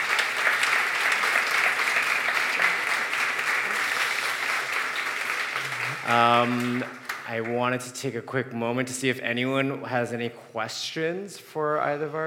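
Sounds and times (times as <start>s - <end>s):
audience applause: 0.0s - 7.3s
speech: 6.1s - 12.2s.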